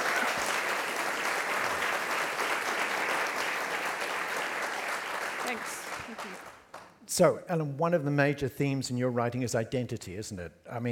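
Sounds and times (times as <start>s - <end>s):
audience applause welcoming a writer on stage: 0.0s - 6.9s
speech: 7.1s - 10.9s.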